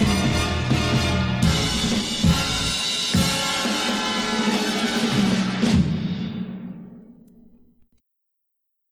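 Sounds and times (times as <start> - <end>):
strings: 0.2 - 6.6.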